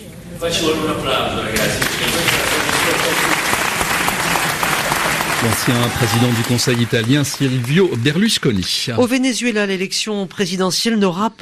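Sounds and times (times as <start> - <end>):
speech: 0.4 - 3.6, 5.4 - 11.3
audience applauding: 1.6 - 9.0.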